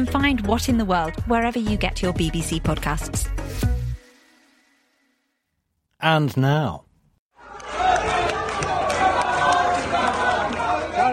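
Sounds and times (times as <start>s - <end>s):
speech: 0.0s - 3.7s, 6.0s - 6.8s
crowd in India's Parliament shouting and cheering: 7.4s - 11.1s.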